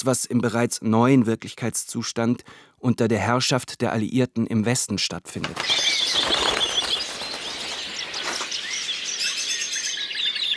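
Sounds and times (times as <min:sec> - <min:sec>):
speech: 0:00.0 - 0:06.4
dense chorus of birds shrieking in a Berlin Zoological Garden enclosure: 0:05.6 - 0:10.5.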